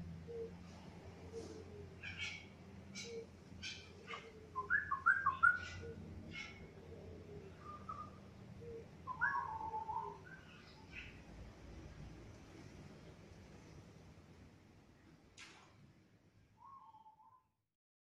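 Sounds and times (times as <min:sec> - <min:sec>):
straw-headed bulbul singing: 0:02.0 - 0:06.7, 0:07.4 - 0:11.2.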